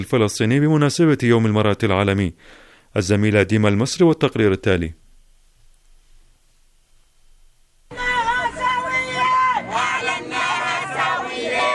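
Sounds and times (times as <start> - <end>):
speech: 0.0 - 5.0
protest crowd chanting: 7.9 - 11.7.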